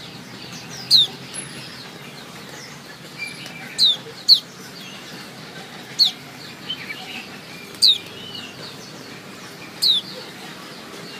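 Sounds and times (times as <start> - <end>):
white-eye chirping: 0.7 - 1.3, 3.2 - 5.2, 5.9 - 10.3.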